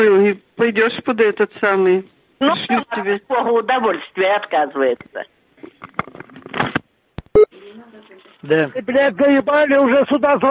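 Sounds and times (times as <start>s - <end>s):
speech: 0.0s - 6.2s, 7.7s - 10.4s
telephone keypad beeps and clicks while setting caller ID: 7.3s - 7.5s.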